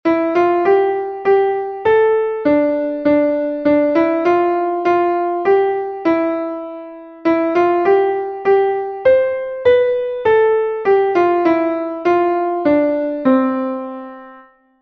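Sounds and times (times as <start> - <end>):
piano: 0.0 - 14.8.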